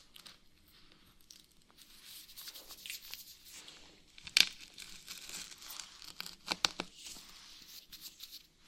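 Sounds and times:
dry crinkly scratching: 1.8s - 3.8s, 4.5s - 8.5s.

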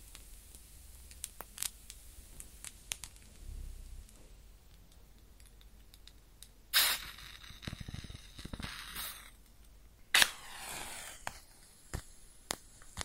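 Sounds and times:
match flame crackling and sizzling: 0.0s - 4.4s, 6.0s - 9.4s, 10.1s - 13.0s
small clicks and pops: 0.0s - 10.4s, 11.2s - 13.0s
match struck and lit: 0.1s - 3.3s, 6.8s - 9.4s, 10.1s - 13.0s.

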